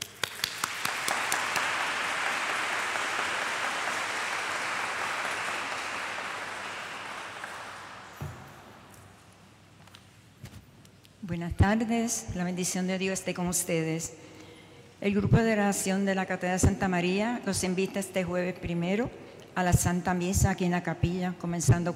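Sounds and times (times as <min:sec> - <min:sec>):
audience applause in church: 0:00.0 - 0:08.9
speech: 0:11.3 - 0:14.3, 0:15.0 - 0:21.9.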